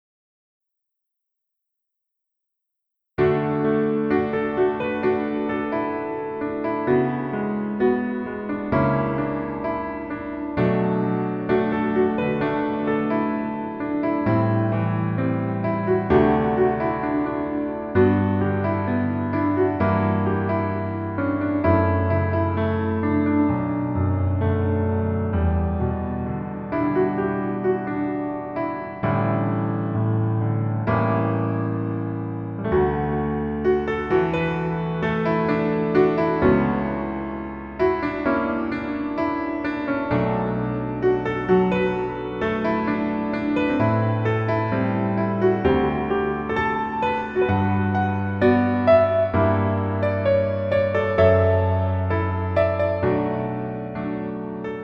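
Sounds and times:
piano melody backing track in male key: 3.2s - 54.8s.

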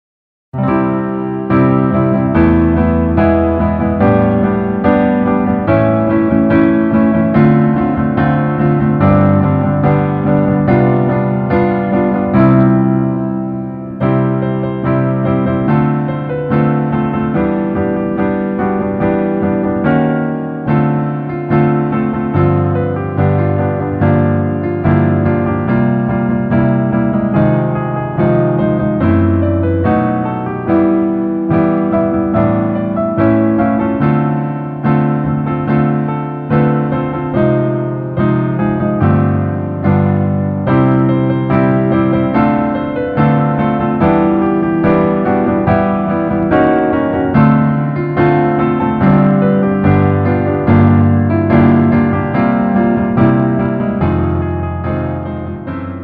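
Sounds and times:
piano melody instrumental: 0.5s - 56.0s.

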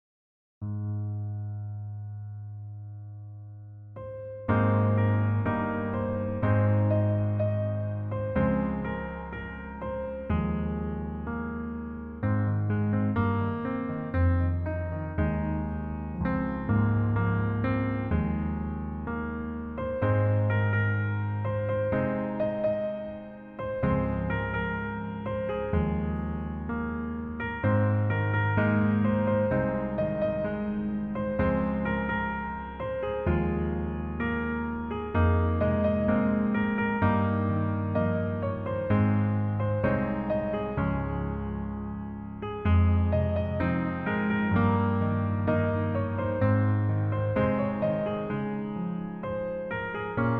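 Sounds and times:
piano: 0.6s - 50.3s.

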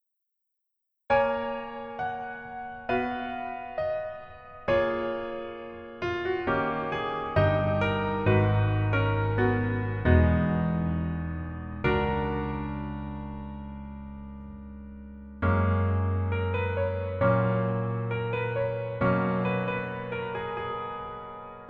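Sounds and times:
piano version melody backing track: 1.1s - 21.6s.

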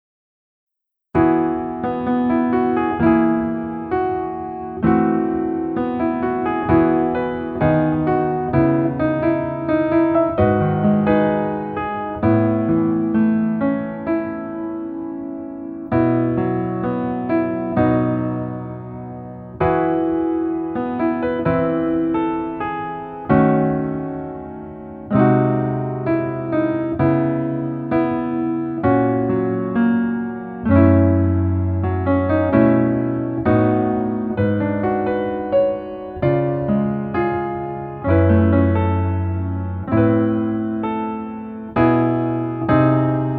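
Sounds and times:
piano version in female key: 1.1s - 43.3s.

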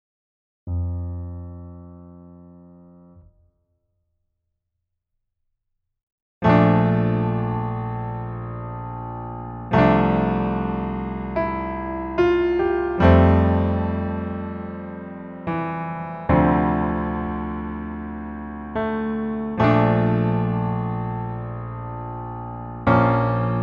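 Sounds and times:
piano: 0.7s - 3.3s, 6.4s - 23.6s.

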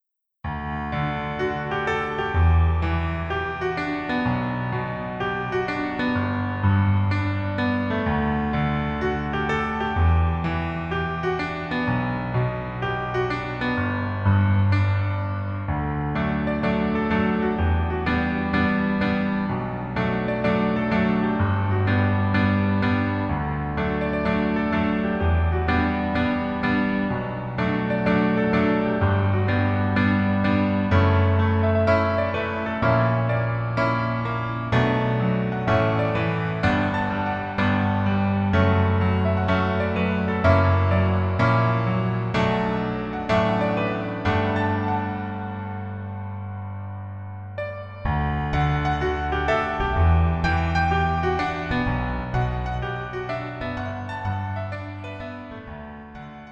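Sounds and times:
piano melody instrumental: 0.0s - 56.5s.

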